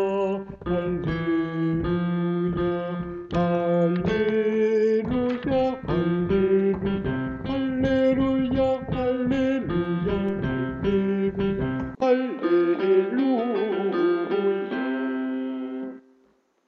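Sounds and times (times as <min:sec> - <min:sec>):
bass voice singing alleluia: 0:00.0 - 0:15.0.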